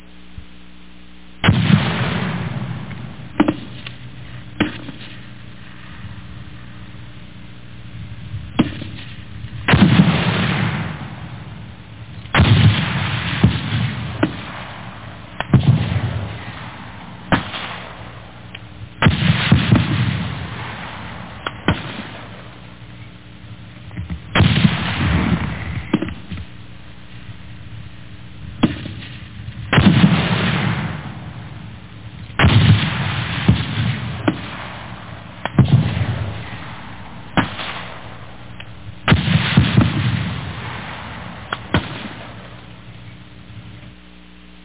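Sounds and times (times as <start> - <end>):
grenade explosion: 1.4 - 5.2, 8.4 - 22.7, 24.0 - 26.4, 28.5 - 42.7.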